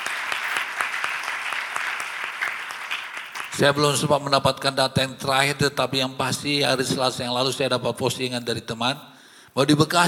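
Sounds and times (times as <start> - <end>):
audience applauding: 0.0 - 3.6
speech: 3.6 - 10.0.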